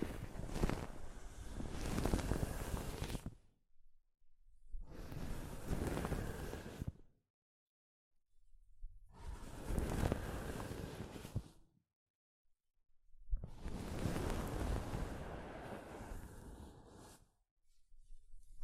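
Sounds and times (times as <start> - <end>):
soft fabric brushing across a microphone: 0.0 - 3.3, 4.9 - 6.9, 9.2 - 11.6, 13.5 - 18.6.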